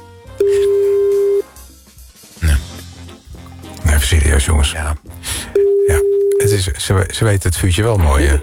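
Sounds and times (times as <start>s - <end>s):
telephone call tone: 0.4s - 1.5s, 5.5s - 6.5s
speech: 4.1s - 8.4s.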